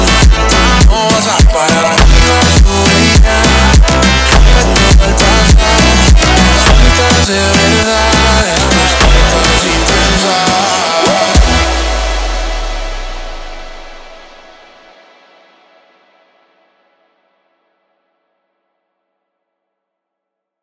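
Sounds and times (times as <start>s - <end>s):
slowed funk music: 0.0s - 14.6s.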